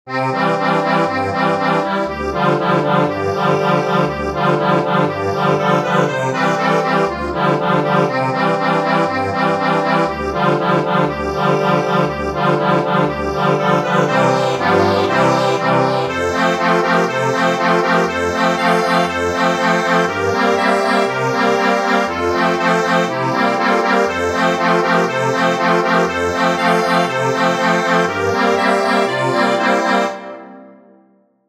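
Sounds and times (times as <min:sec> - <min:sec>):
accordion: 0:00.1 - 0:30.9.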